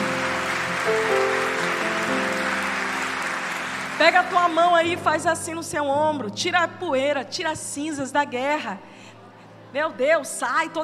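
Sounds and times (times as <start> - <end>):
crowd applause: 0.0 - 5.0
sustained keyboard chords: 0.0 - 6.8
speech: 4.0 - 9.1, 9.7 - 10.8.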